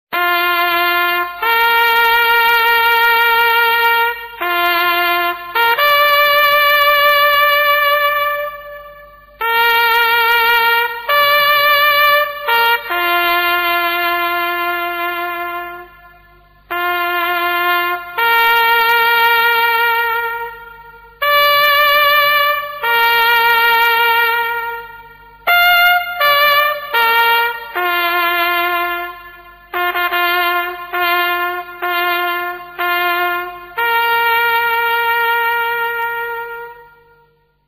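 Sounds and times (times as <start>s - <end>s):
bugle call: 0.1s - 16.0s, 16.7s - 36.9s.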